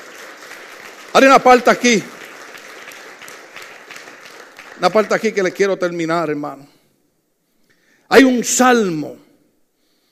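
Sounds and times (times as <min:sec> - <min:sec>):
audience applauding: 0:00.0 - 0:06.1
speech: 0:01.2 - 0:02.2, 0:04.8 - 0:06.7, 0:08.1 - 0:09.2.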